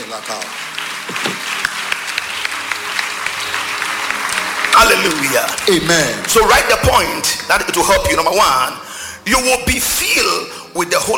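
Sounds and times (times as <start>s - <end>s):
audience clapping: 0.0s - 9.9s
speech: 0.1s - 1.4s, 4.8s - 11.1s.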